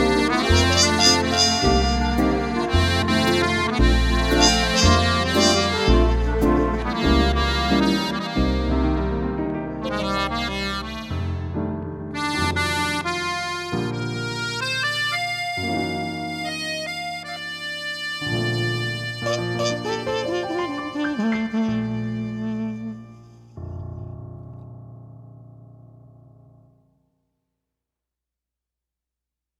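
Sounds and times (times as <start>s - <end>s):
accordion: 0.0s - 23.2s
trumpet: 0.0s - 23.5s.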